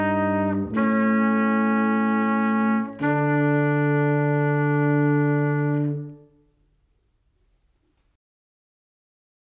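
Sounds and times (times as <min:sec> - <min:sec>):
two-part melodic dictation melody: 0:00.0 - 0:06.3.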